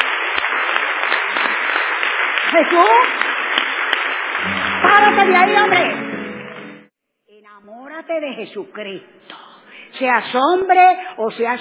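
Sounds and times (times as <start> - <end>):
church congregation applauding for Jesus Christ: 0.0 - 6.9
speech: 2.5 - 3.2, 4.9 - 6.0, 7.5 - 9.4, 10.0 - 11.6.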